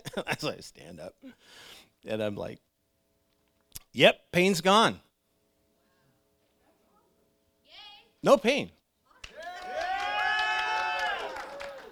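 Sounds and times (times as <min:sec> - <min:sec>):
speech: 0:00.2 - 0:02.7, 0:03.9 - 0:05.1, 0:08.2 - 0:08.8
audience cheering: 0:09.2 - 0:11.8.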